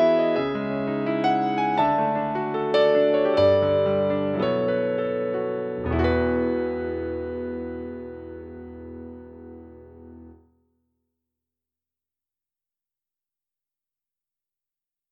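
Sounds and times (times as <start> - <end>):
modern piano music: 0.0 - 10.4.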